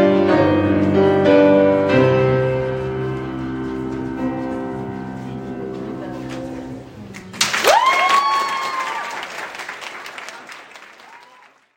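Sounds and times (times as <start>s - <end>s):
piano: 0.0s - 9.0s.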